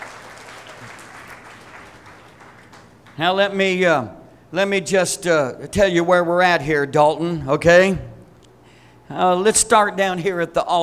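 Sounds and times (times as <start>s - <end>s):
audience clapping: 0.0s - 3.2s
speech: 3.2s - 8.1s, 9.1s - 10.8s.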